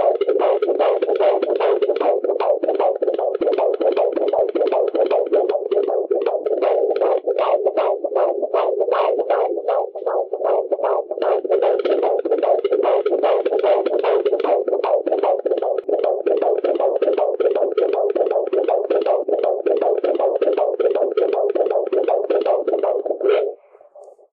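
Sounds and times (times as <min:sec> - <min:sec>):
baby heartbeat: 0:00.0 - 0:24.3.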